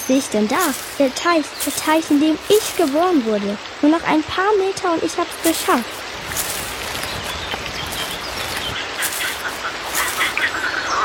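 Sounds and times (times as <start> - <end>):
chorus of male toads calling: 0.0 - 3.4, 5.1 - 11.0
speech: 0.1 - 6.1.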